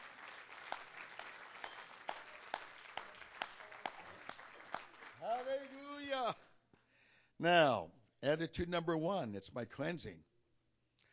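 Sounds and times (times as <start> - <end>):
audience clapping hands: 0.0 - 6.4
speech: 7.4 - 10.3.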